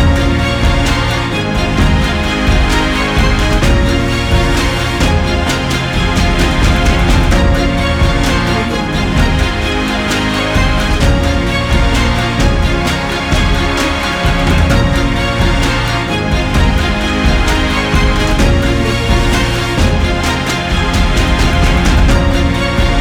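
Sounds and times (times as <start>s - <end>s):
epic background music: 0.0s - 22.9s.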